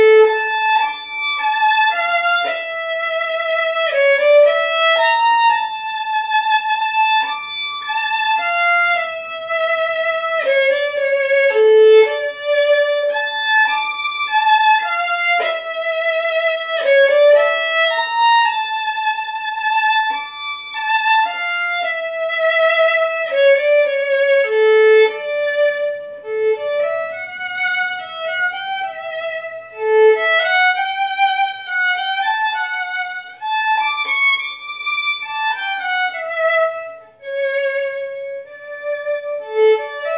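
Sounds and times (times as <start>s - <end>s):
Stradivarius violin: 0.0s - 40.1s.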